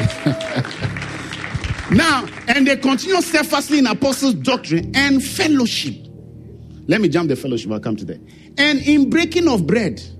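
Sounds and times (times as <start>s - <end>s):
laughter: 0.0s - 1.2s
audience clapping: 0.0s - 4.3s
speech: 1.9s - 6.0s, 6.9s - 10.1s.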